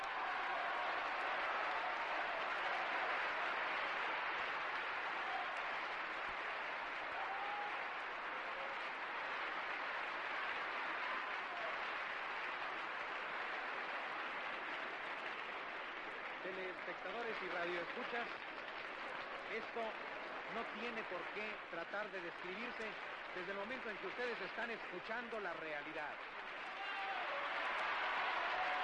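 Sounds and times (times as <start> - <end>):
audience ovation, sustained applause: 0.0 - 28.8
speech: 17.0 - 18.4, 19.5 - 26.4.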